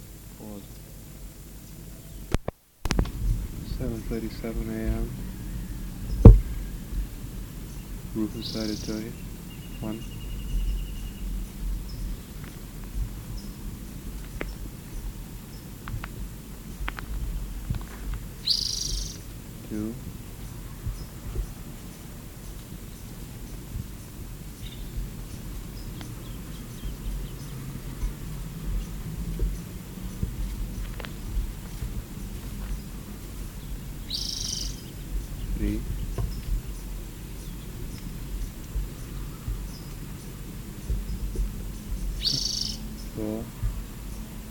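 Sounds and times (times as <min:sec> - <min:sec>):
faint scattered ticks: 0:00.4 - 0:44.3
steady low rumble: 0:02.9 - 0:44.4
bird chip calls: 0:03.6 - 0:44.3
speech: 0:03.8 - 0:05.3, 0:08.2 - 0:10.2.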